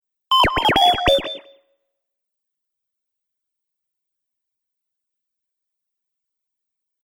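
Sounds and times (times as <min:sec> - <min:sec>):
droid message bleeps, robot sound effects: 0:00.3 - 0:01.6.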